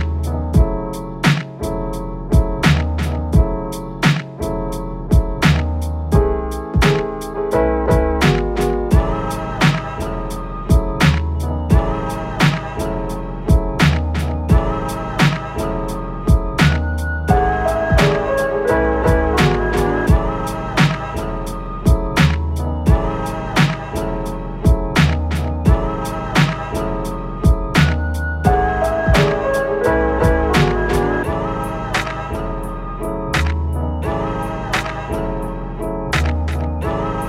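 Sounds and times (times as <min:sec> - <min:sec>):
jazz in E major: 0:00.0 - 0:37.2.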